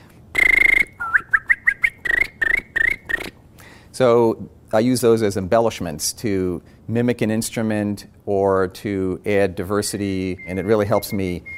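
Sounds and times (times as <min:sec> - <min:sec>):
tongue whistling: 0:00.4 - 0:03.3, 0:10.4 - 0:11.5
speech: 0:04.0 - 0:11.5.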